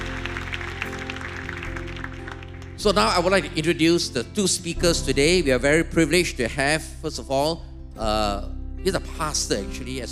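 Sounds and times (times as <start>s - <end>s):
audience clapping: 0.0s - 3.5s
sustained low musical tones: 0.0s - 10.1s
speech: 2.8s - 10.1s.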